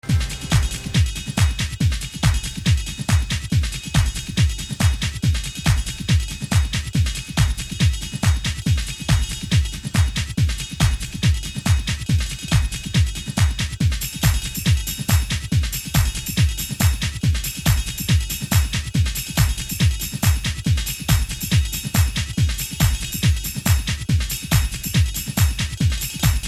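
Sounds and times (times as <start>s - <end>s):
Christmas techno music: 0.0s - 26.4s.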